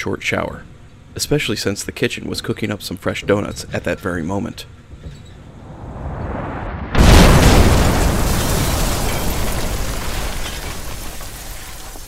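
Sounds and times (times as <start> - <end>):
speech: 0.0 - 5.2
roaring debris noise: 5.4 - 12.0
explosion blast: 5.5 - 11.0.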